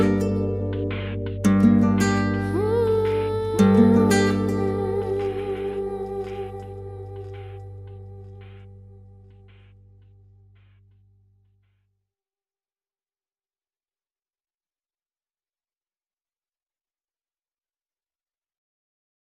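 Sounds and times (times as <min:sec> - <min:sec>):
cinematic guitar: 0:00.0 - 0:09.6.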